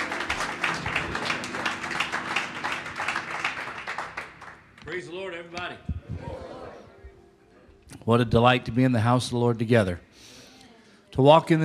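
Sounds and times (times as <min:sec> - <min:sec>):
church congregation clapping to welcome a preacher: 0:00.0 - 0:05.5
speech: 0:05.0 - 0:05.9, 0:08.0 - 0:10.1, 0:11.1 - 0:11.6.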